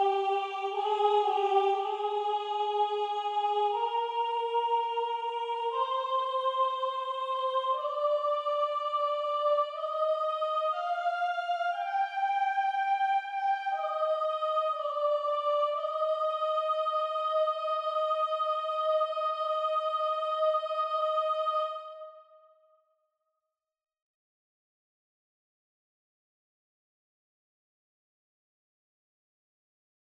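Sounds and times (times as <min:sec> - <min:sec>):
soprano singing: 0:00.0 - 0:22.1.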